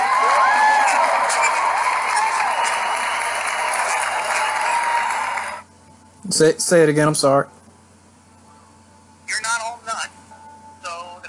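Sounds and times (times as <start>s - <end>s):
applause: 0.0s - 5.7s
speech: 6.4s - 7.6s.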